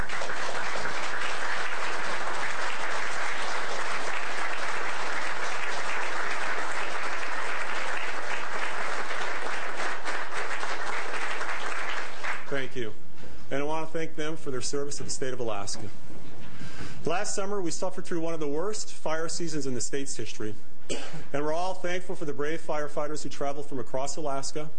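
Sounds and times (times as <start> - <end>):
audience applause at an Alaska governor's address greeting the state cabinet: 0.0 - 12.7
speech: 13.8 - 16.0, 17.0 - 24.7.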